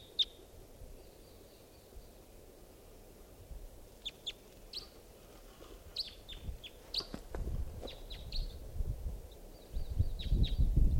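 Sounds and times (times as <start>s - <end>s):
wild bird giving short high thin chirps: 0.0s - 2.3s, 4.0s - 5.0s, 5.9s - 7.2s, 7.8s - 8.6s, 9.3s - 10.9s.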